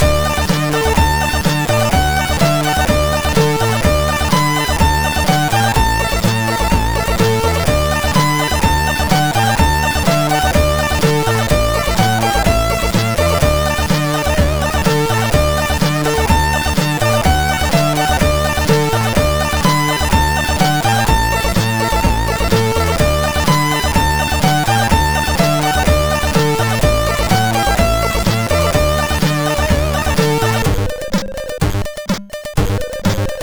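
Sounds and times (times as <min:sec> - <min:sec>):
TV tunes mix chiptune on MOS6581R4 sound chip: 0:00.0 - 0:33.4.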